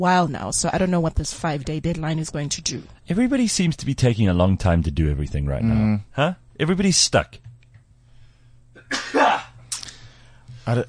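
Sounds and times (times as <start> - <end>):
speech: 0.0 - 7.5, 10.6 - 10.8
steady low hum: 0.0 - 10.8
person sneezing: 8.8 - 10.0.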